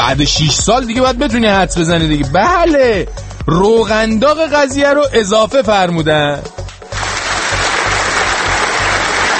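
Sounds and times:
speech: 0.1 - 6.6
crowd applause: 6.9 - 9.3.

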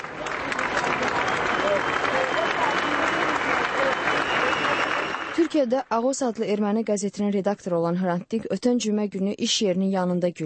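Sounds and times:
crowd clapping at a funeral procession: 0.0 - 6.8
speech: 5.6 - 10.4.

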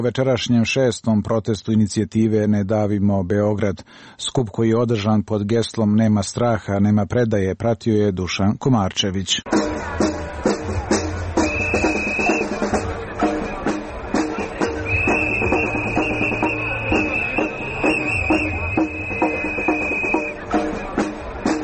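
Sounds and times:
speech: 0.0 - 10.0
protest drums: 9.5 - 21.6
protest whistles: 11.4 - 12.8, 14.3 - 20.5.

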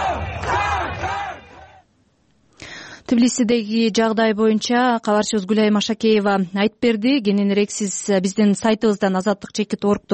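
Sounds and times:
crowd shouting in support at a political rally in Tbilisi: 0.0 - 1.9
speech: 3.1 - 10.1.

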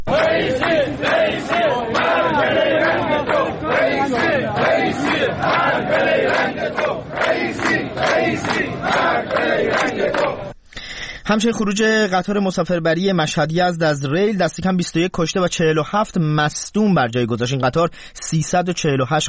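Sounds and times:
protesting retirees chanting slogans: 0.0 - 10.6
speech: 11.3 - 19.2.

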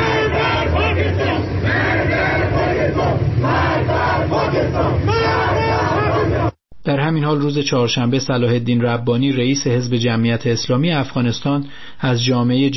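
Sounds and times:
protest crowd chanting slogans: 0.0 - 6.6
speech: 6.9 - 12.7.

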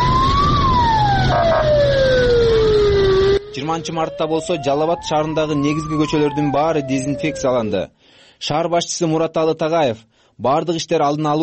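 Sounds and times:
fire engine siren driving through streets to disinfect quarantined villages: 0.0 - 7.8
speech: 3.7 - 11.4.

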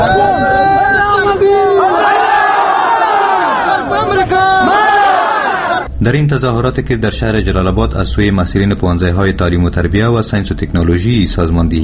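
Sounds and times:
protesters chanting slogans: 0.0 - 5.9
speech: 6.0 - 11.8.

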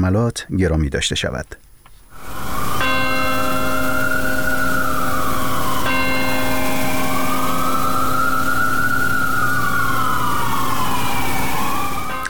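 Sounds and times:
speech: 0.0 - 1.7
Bell of Hope ringing in front of St. Paul's Chapel in New York: 2.4 - 12.2.

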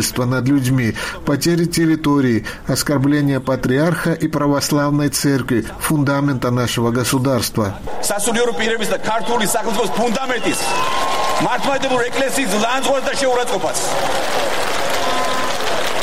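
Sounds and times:
speech: 0.0 - 15.2
rally crowd ovation: 7.9 - 16.0.

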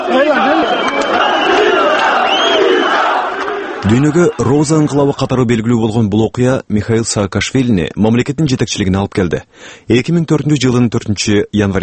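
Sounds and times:
crowd outside the Georgian parliament chanting a leader's name during the Rose Revolution: 0.0 - 4.5
speech: 3.8 - 11.8.

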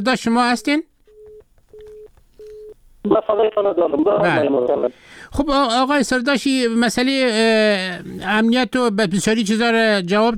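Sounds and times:
speech: 0.0 - 0.9, 3.0 - 10.3
telephone tone beeps after a call is cut off: 0.6 - 2.8.

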